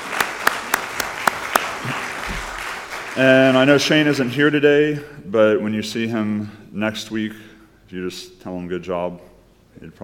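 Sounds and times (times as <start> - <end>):
thin round of applause: 0.0 - 4.4
speech: 3.2 - 10.0.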